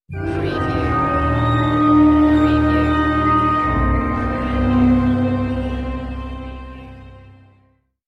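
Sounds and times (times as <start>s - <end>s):
dark production stinger: 0.1s - 7.4s.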